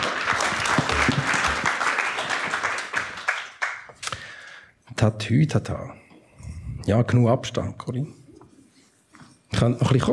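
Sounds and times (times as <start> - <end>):
audience applause: 0.0 - 3.9
speech: 5.0 - 6.0, 6.9 - 8.2, 9.6 - 10.1.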